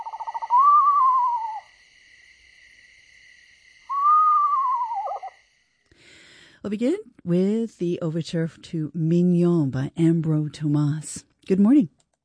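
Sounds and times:
eastern screech owl descending whinny: 0:00.0 - 0:01.7, 0:03.9 - 0:05.4
speech: 0:06.6 - 0:12.0.

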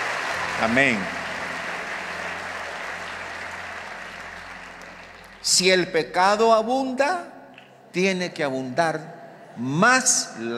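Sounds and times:
audience applause: 0:00.0 - 0:05.7
speech: 0:00.6 - 0:01.2, 0:05.5 - 0:07.3, 0:07.9 - 0:10.5.

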